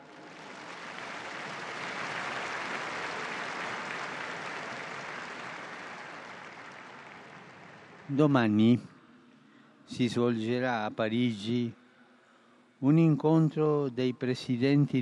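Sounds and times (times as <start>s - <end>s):
crowd applause: 0.0s - 8.2s
speech: 8.1s - 8.9s, 9.9s - 11.8s, 12.8s - 15.0s.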